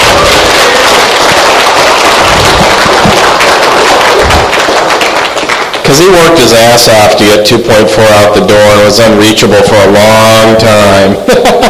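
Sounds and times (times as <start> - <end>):
audience applause: 0.0 - 6.4
speech: 5.9 - 11.6
laughter: 11.1 - 11.6.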